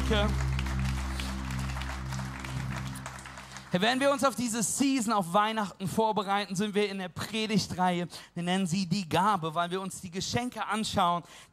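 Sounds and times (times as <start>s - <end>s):
organ or keyboard chord droning: 0.0s - 3.8s
audience applause: 0.0s - 4.5s
speech: 0.1s - 0.5s, 3.7s - 11.5s.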